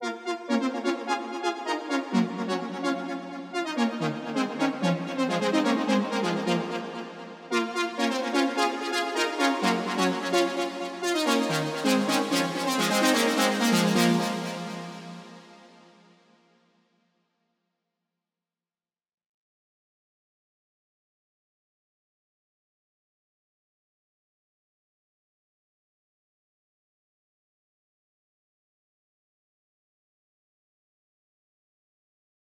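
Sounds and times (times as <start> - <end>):
breakdown synth lead: 0.0 - 15.8.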